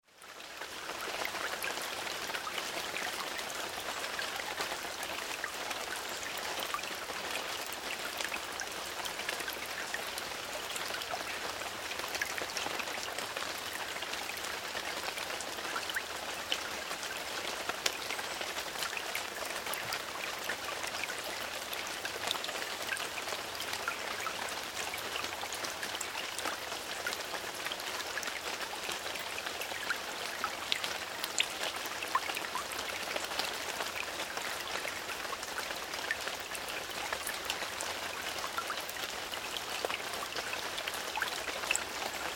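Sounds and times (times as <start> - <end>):
rain onto foliage: 0.0 - 42.3.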